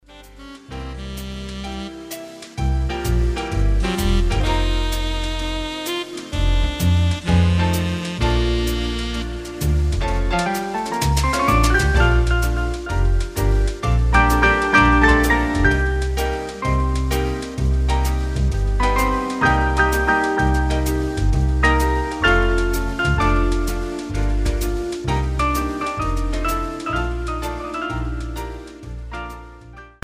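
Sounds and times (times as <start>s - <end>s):
piano: 0.0s - 30.0s.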